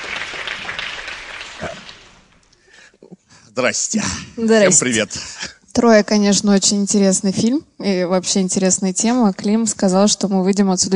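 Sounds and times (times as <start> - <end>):
clapping: 0.0 - 2.6
speech: 3.6 - 10.9.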